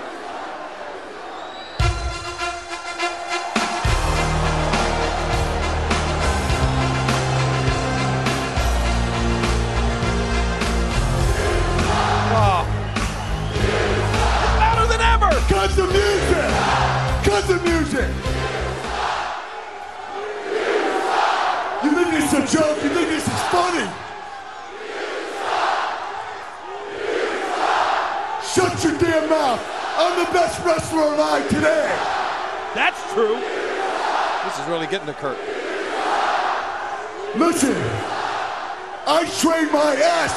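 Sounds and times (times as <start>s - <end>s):
large arena crowd chanting and yelling: 0.0s - 40.3s
speech: 34.7s - 35.7s, 37.4s - 38.2s, 39.1s - 40.3s.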